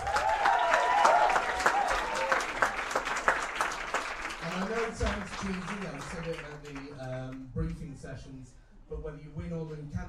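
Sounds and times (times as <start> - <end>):
voices cheering: 0.0 - 3.3
audience clapping: 0.0 - 7.8
speech: 5.4 - 10.0.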